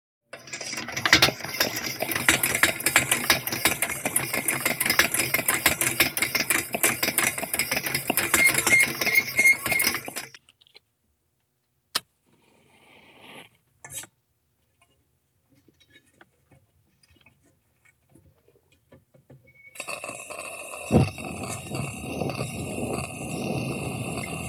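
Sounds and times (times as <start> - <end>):
gas lantern: 0.3 - 10.4, 19.8 - 24.4.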